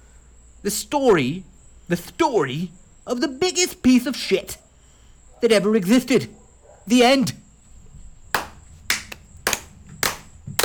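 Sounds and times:
speech: 0.6s - 4.6s, 5.4s - 7.4s
clapping: 8.4s - 10.6s.

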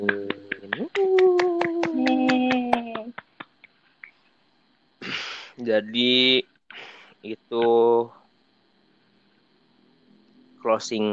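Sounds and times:
hand clapping applause: 0.0s - 4.2s
speech: 5.7s - 6.5s, 7.2s - 8.2s, 10.6s - 11.1s.

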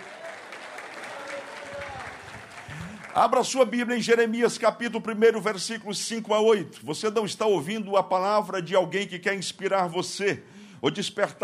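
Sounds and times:
audience applauding: 0.0s - 3.8s
speech: 3.2s - 11.4s.

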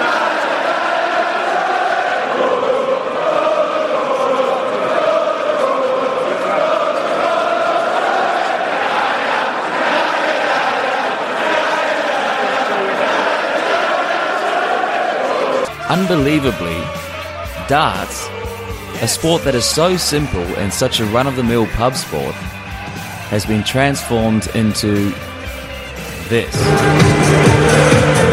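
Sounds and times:
rowdy darts crowd chanting: 0.0s - 28.3s
speech: 15.9s - 17.0s, 17.7s - 18.3s, 19.0s - 22.6s, 23.3s - 25.3s, 26.3s - 27.4s.

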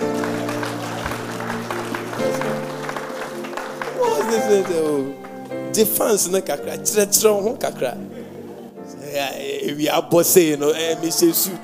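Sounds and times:
audience clapping: 0.0s - 6.3s
speech: 4.3s - 5.2s, 5.8s - 8.2s, 9.2s - 11.6s.

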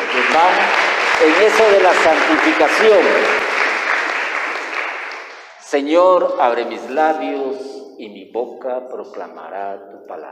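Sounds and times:
audience applause: 0.0s - 5.6s
speech: 0.4s - 3.5s, 5.7s - 10.2s.

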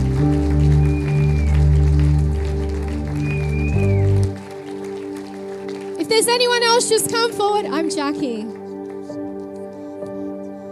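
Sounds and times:
audience applause: 0.0s - 7.6s
speech: 6.3s - 8.6s.

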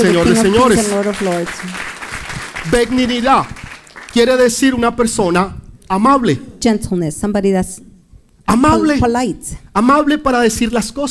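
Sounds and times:
speech: 0.0s - 1.9s, 2.6s - 7.9s, 8.5s - 11.0s
loud applause: 0.0s - 4.3s.

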